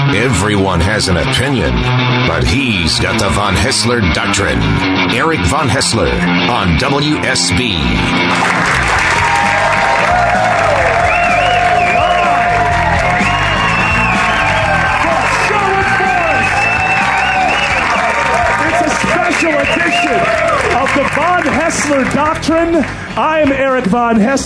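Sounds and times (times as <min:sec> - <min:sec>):
speech: 0:00.2 - 0:09.4, 0:21.9 - 0:24.4
live studio audience applauding and cheering: 0:08.1 - 0:24.2
whoops and shouted voices: 0:08.9 - 0:20.8.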